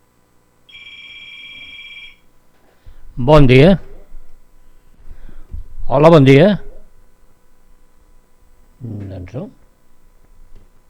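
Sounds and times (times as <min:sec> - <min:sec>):
telephone ringing for an incoming call on a radio show: 0:00.7 - 0:02.3
speech: 0:03.2 - 0:03.9, 0:05.9 - 0:06.6.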